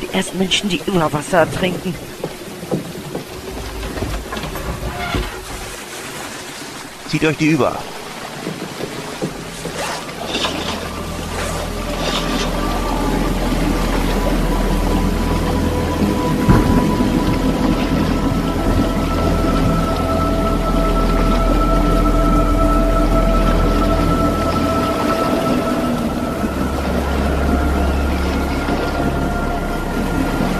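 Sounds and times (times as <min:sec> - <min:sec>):
boat moving on water: 0:00.0 - 0:30.5
heavy rain: 0:00.0 - 0:30.5
speech: 0:00.2 - 0:02.2, 0:07.1 - 0:08.0
thunder: 0:16.0 - 0:20.0.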